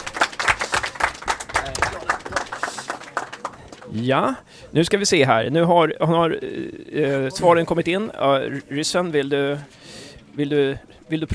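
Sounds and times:
small group applause: 0:00.0 - 0:04.0
speech: 0:03.9 - 0:11.3.

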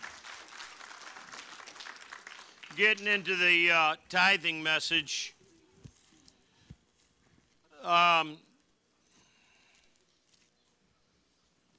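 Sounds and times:
audience clapping: 0:00.0 - 0:03.6
speech: 0:02.8 - 0:05.4, 0:07.9 - 0:08.4.

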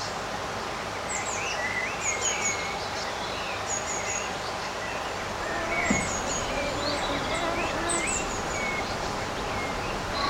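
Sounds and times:
birds singing in a summer garden: 0:01.0 - 0:10.2
steady low rumble of outdoor noise: 0:05.2 - 0:10.2
brief louder thump: 0:05.6 - 0:06.6.

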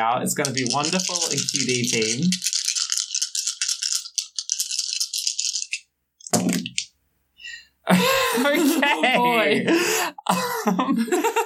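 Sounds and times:
speech: 0:00.0 - 0:02.5, 0:08.9 - 0:11.3
dice being rolled: 0:00.4 - 0:06.9
laughter: 0:07.9 - 0:11.4.

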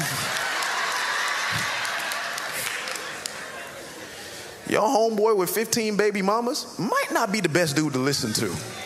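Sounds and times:
audience clapping: 0:00.0 - 0:03.7
speech: 0:04.8 - 0:08.8.

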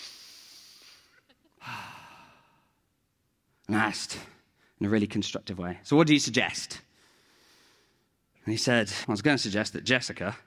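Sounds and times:
deep breath: 0:00.0 - 0:02.8, 0:06.9 - 0:08.1
speech: 0:03.7 - 0:06.9, 0:08.5 - 0:10.4.

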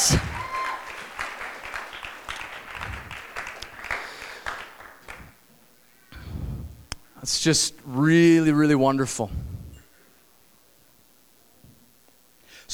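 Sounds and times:
crowd applause: 0:00.0 - 0:05.4
speech: 0:00.1 - 0:00.3, 0:07.2 - 0:09.5.

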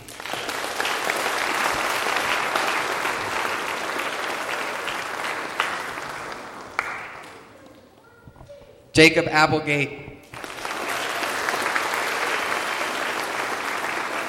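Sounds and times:
audience applause for graduates receiving diplomas: 0:00.0 - 0:07.7, 0:10.2 - 0:14.2
speech: 0:09.0 - 0:10.0.

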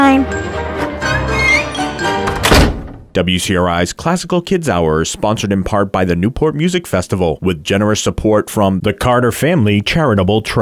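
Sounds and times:
sustained musical tones: 0:00.0 - 0:02.5
concert hall doors closing: 0:01.0 - 0:03.2, 0:04.7 - 0:06.0
speech: 0:03.2 - 0:10.6.

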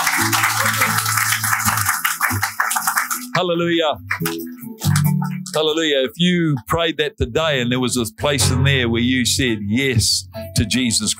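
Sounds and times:
audience clapping hands: 0:00.0 - 0:05.9
speech: 0:03.4 - 0:04.6, 0:05.5 - 0:11.1.

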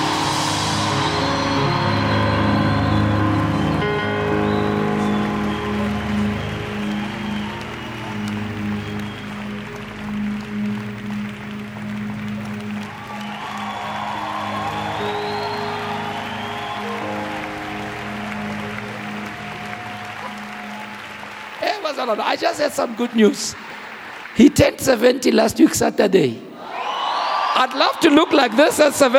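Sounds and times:
low tonal hum: 0:00.0 - 0:21.6
church congregation applause welcoming an archbishop: 0:00.0 - 0:29.1
speech: 0:22.0 - 0:23.7, 0:24.4 - 0:26.5, 0:27.6 - 0:29.1.

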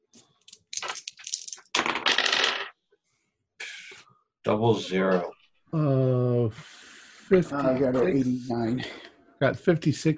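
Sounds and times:
dice rattling and clacking: 0:00.5 - 0:02.7
speech: 0:04.4 - 0:10.1.

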